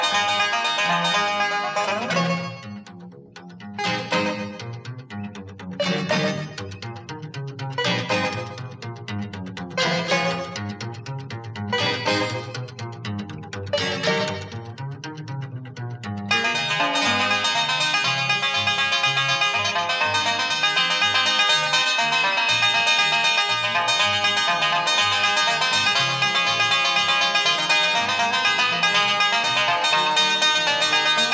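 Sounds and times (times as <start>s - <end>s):
harp: 0.0s - 15.1s, 16.2s - 31.3s
banjo: 0.0s - 31.3s.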